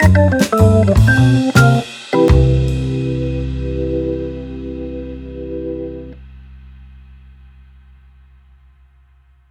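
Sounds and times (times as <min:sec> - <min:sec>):
blues music at 105 bpm: 0:00.0 - 0:06.2.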